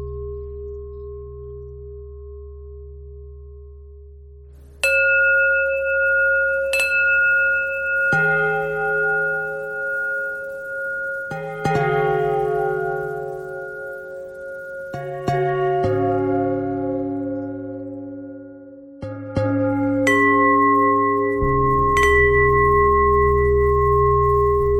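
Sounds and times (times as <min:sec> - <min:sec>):
bells ringing: 0:04.9 - 0:17.2, 0:19.8 - 0:24.7.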